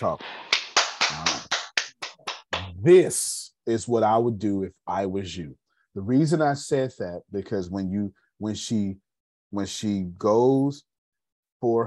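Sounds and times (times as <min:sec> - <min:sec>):
speech: 0:00.0 - 0:00.4, 0:01.1 - 0:01.5, 0:02.8 - 0:10.9, 0:11.6 - 0:11.8
people clapping: 0:00.0 - 0:02.8.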